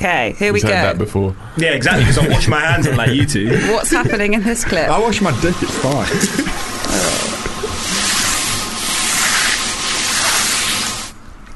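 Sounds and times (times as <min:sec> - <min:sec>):
speech: 0:00.0 - 0:07.2
laughter: 0:01.7 - 0:07.8
mop being used on a floor: 0:06.8 - 0:11.2.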